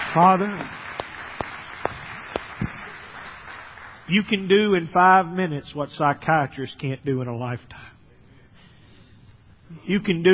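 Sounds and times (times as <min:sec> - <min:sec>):
hand claps of praise during a church service: 0:00.0 - 0:04.1
speech: 0:00.1 - 0:00.8, 0:04.1 - 0:07.9, 0:09.7 - 0:10.3.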